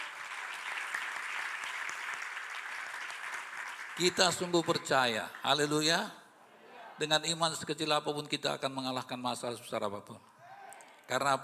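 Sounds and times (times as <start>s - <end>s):
audience applause: 0.0s - 5.8s
speech: 4.0s - 6.2s, 7.0s - 10.3s, 11.1s - 11.4s.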